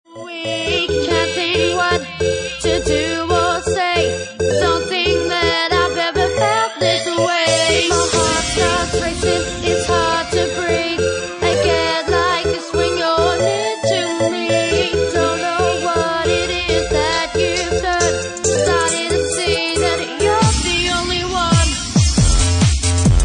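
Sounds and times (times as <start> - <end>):
bassline: 0.1 - 23.2.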